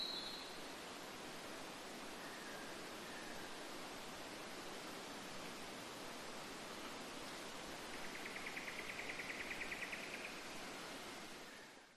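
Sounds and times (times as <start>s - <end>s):
short unidentified bird call in Queensland Australia forest: 0.0s - 0.4s
winter nature forest ambience in Queensland Australia: 0.0s - 1.0s, 2.0s - 11.9s.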